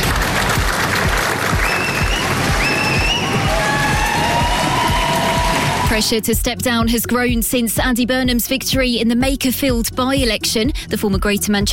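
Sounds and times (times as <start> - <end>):
applause: 0.0 - 5.9
cheering: 0.0 - 6.0
speech: 6.0 - 11.7.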